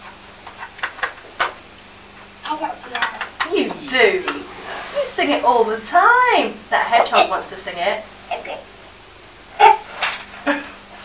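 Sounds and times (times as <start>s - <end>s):
low hum: 0.0s - 11.0s
speech: 2.5s - 2.9s, 3.9s - 4.4s, 5.1s - 8.4s
coughing: 7.0s - 7.4s, 9.5s - 10.8s.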